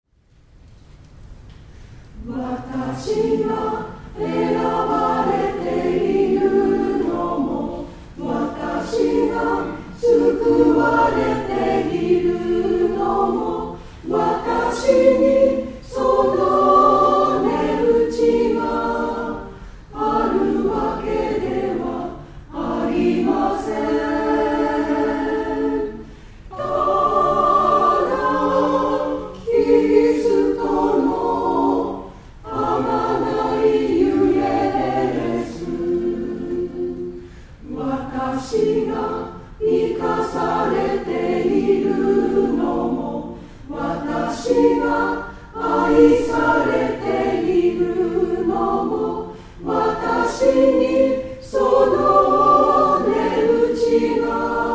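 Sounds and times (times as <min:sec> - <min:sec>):
choir singing: 0:02.2 - 0:54.7.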